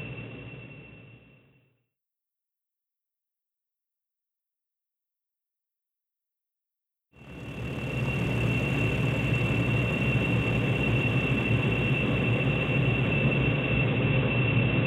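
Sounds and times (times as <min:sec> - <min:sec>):
engines: 0:07.2 - 0:14.7.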